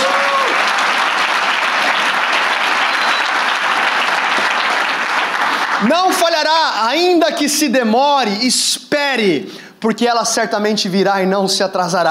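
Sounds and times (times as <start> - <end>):
audience applause: 0.0 - 6.5
speech: 5.8 - 12.0.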